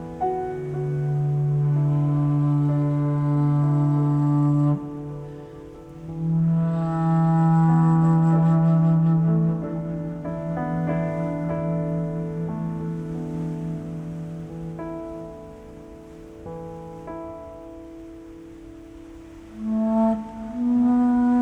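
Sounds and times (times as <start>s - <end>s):
ocean wind: 0.0s - 21.3s.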